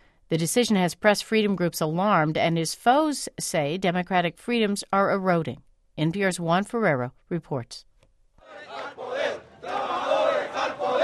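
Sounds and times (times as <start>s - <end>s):
speech: 0.3s - 7.9s
crowd of protesters outside RCTV television station: 8.4s - 11.0s.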